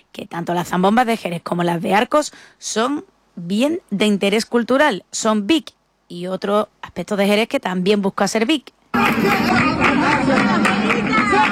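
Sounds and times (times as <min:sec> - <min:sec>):
speech: 0:00.1 - 0:10.5
crowd chatter outside the Peña La Bulería flamenco club in Jerez: 0:09.0 - 0:11.5.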